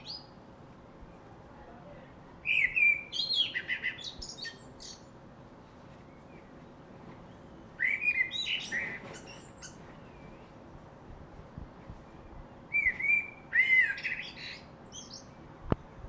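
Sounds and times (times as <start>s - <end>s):
common blackbird singing: 0.0s - 0.4s, 2.4s - 5.2s, 7.3s - 10.6s, 12.1s - 15.4s.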